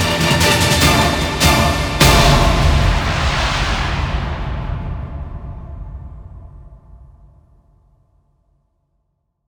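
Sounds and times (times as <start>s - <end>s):
battle music: 0.0s - 4.0s.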